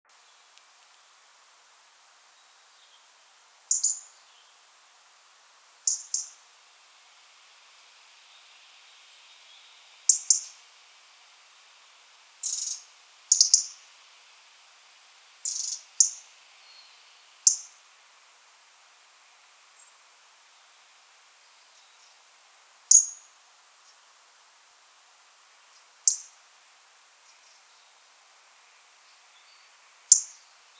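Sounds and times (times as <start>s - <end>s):
light background hiss: 0.0s - 30.7s
European robin tick calls: 2.5s - 4.7s, 5.9s - 6.4s, 10.1s - 10.6s, 12.4s - 13.9s, 15.4s - 17.8s, 22.9s - 23.3s, 25.7s - 26.4s, 30.1s - 30.5s.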